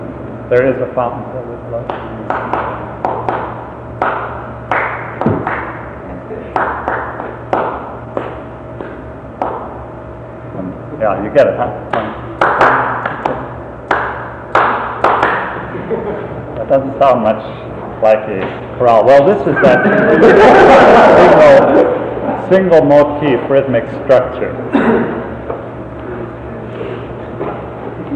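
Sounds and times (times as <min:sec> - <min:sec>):
speech: 0:00.5 - 0:02.7, 0:11.0 - 0:12.2, 0:16.7 - 0:25.2
hands clapping a hymn tune's rhythm: 0:01.8 - 0:05.8, 0:06.5 - 0:09.7, 0:11.9 - 0:15.7
laughter: 0:15.6 - 0:16.6, 0:19.4 - 0:22.5.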